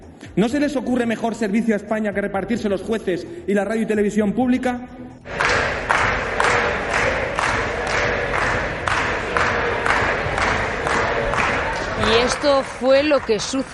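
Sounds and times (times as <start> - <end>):
speech: 0.3 - 5.4, 12.1 - 13.7
crowd of deputies clapping and chanting: 5.2 - 13.7.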